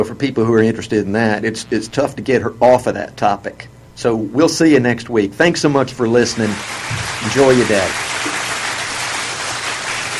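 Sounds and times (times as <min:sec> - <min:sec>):
speech: 0:00.0 - 0:08.1
applause: 0:06.4 - 0:10.1.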